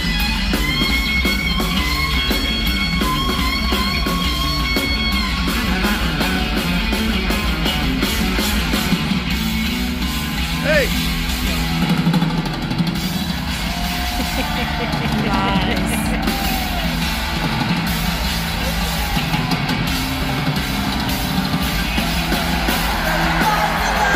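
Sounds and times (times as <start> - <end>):
crowd cheering and yelling: 0.0 - 24.1
laughter: 13.4 - 21.1, 21.7 - 24.1.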